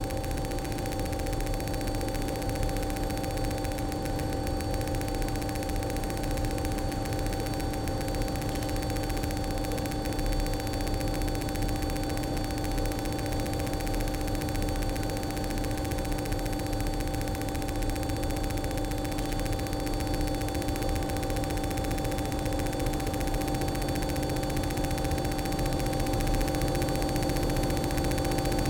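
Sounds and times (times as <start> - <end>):
rhythmic engine room machinery: 0.0 - 28.6.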